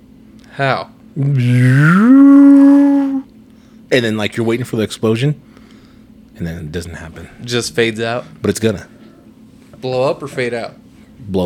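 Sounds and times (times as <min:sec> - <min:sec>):
speech: 0:00.6 - 0:02.4, 0:03.9 - 0:05.5, 0:06.4 - 0:09.0, 0:09.8 - 0:11.4
voice imitating an electric car driving by: 0:01.2 - 0:03.3.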